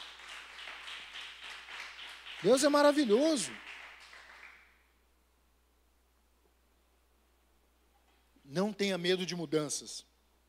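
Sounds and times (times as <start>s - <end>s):
audience applause: 0.0s - 4.7s
speech: 2.4s - 3.7s, 8.5s - 10.1s.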